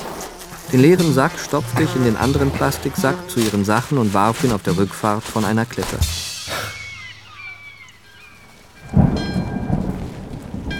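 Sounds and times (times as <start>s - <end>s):
speech: 0.7s - 6.3s
faint tonal chirps: 6.3s - 9.9s
steady rain: 8.3s - 10.7s
deep rumble of thunder: 8.6s - 10.7s.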